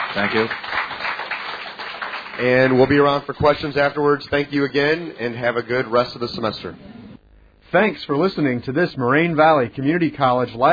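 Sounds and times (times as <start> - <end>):
round of applause: 0.0 - 3.4
speech: 0.1 - 0.9, 2.4 - 7.0, 7.7 - 10.7.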